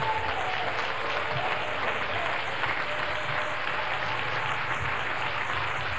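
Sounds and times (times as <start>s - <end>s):
audience hand clapping: 0.0s - 5.9s.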